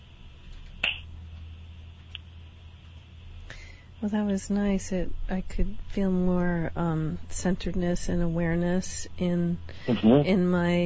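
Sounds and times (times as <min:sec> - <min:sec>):
steady low hum: 0:00.0 - 0:10.8
finger snap: 0:00.8 - 0:01.1
speech: 0:04.0 - 0:10.8.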